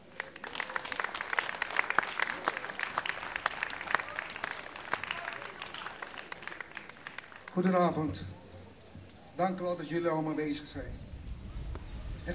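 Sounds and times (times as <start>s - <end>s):
audience applause: 0.0s - 7.7s
speech: 7.6s - 8.4s, 9.4s - 11.0s.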